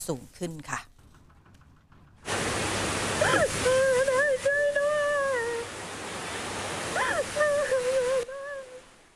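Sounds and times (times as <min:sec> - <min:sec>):
speech: 0:00.1 - 0:00.9
flash floodwater rushing into Village No. 13, Ban Tha Sao, Saraburi: 0:02.2 - 0:09.1.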